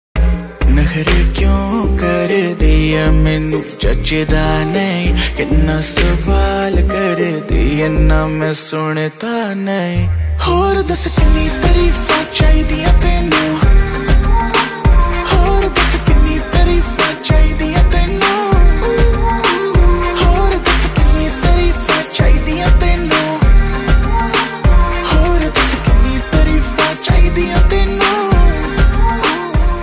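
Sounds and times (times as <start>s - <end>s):
rap ringtone: 0.6s - 29.8s.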